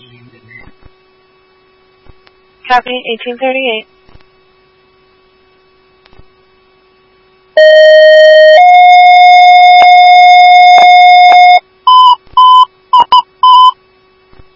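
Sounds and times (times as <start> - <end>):
speech: 2.7 - 4.0
fire dispatch alert tones: 7.6 - 13.8
short high beeps: 8.9 - 13.8.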